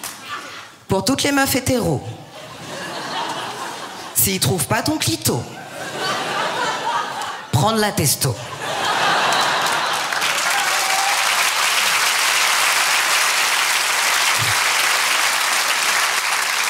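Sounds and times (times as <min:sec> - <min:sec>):
speech: 0:00.9 - 0:02.2, 0:04.2 - 0:05.6, 0:07.6 - 0:08.5
laughter: 0:02.3 - 0:04.2, 0:05.5 - 0:07.6, 0:08.4 - 0:11.1
audience applause: 0:08.8 - 0:16.6.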